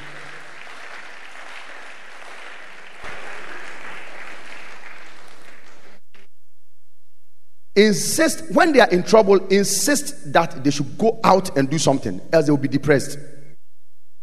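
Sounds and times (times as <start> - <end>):
audience clapping hands: 0.0 - 6.3
speech: 7.8 - 13.3.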